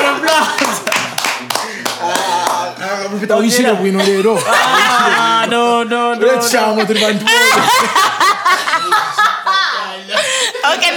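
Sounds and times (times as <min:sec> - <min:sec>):
laughter: 0:00.0 - 0:02.5, 0:03.1 - 0:10.9
round of applause: 0:00.0 - 0:02.7
speech: 0:03.2 - 0:09.2, 0:10.0 - 0:10.9.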